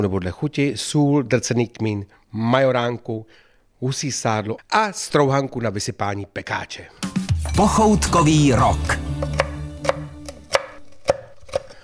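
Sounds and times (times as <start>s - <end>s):
speech: 0.0s - 9.4s
knife chopping crunchy pork cracklings: 9.2s - 11.8s.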